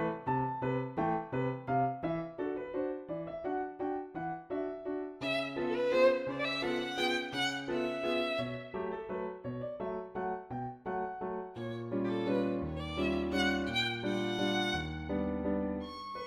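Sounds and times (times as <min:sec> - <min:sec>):
piano playing a comic waltz: 0:00.0 - 0:16.2
violin playing a comic waltz: 0:05.2 - 0:09.2, 0:11.6 - 0:16.2.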